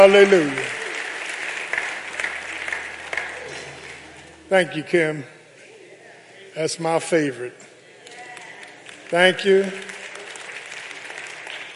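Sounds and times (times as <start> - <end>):
speech: 0.0 - 0.8, 4.5 - 5.4, 6.6 - 7.7, 9.1 - 9.9
audience clapping: 0.0 - 4.5, 8.0 - 11.7.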